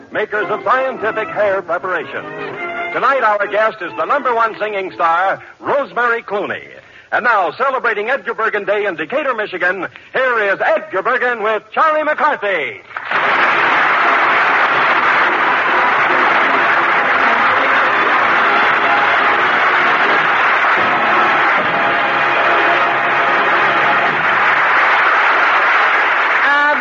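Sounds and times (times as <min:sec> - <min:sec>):
speech: 0:00.2 - 0:13.2
studio audience applause: 0:12.9 - 0:26.7.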